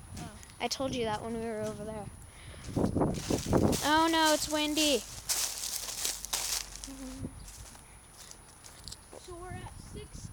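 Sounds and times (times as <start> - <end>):
speech: 0.6 - 5.2
footsteps crunching dry leaves: 2.6 - 9.4.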